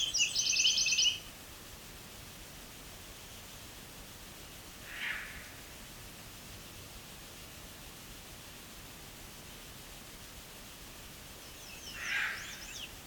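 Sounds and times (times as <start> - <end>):
birds singing in Bruce Peninsula National Park Ontario: 0.0 - 1.2, 11.4 - 13.0
steady soft hiss: 0.0 - 13.0.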